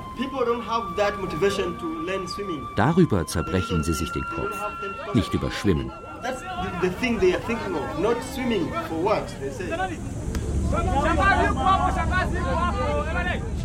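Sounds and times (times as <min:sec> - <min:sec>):
speech: 0:00.2 - 0:13.6
crowd murmur on board a ship: 0:04.7 - 0:13.6
ship engines restarting: 0:06.6 - 0:13.6.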